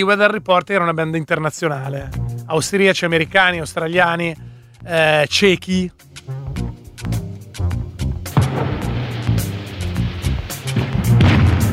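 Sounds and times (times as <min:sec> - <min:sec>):
speech: 0:00.0 - 0:06.1
thunder at the end of a song: 0:08.3 - 0:11.7.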